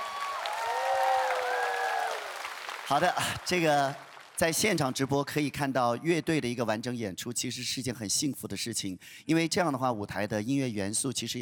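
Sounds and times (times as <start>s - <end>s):
audience applause for a young singer and her band: 0.0s - 4.8s
speech: 2.9s - 11.4s.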